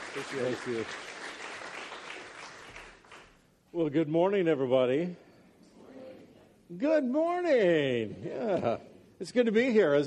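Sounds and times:
audience applause welcoming a speaker: 0.0 - 3.3
speech: 0.2 - 1.1, 3.7 - 5.2, 6.7 - 10.0.

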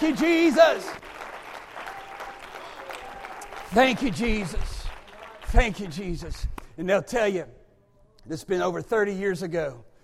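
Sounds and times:
speech: 0.0 - 1.1, 3.7 - 4.7, 5.5 - 7.6, 8.2 - 9.9
audience clapping hands: 0.0 - 6.7.

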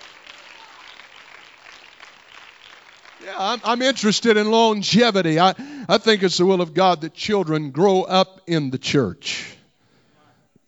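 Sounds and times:
audience clapping hands: 0.0 - 5.5
speech: 3.2 - 9.5.

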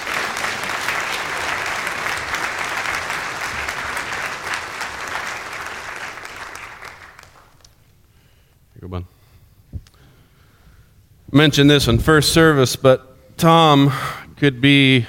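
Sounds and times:
audience applause welcoming a speaker to the stage: 0.0 - 7.9
speech: 11.4 - 15.0.

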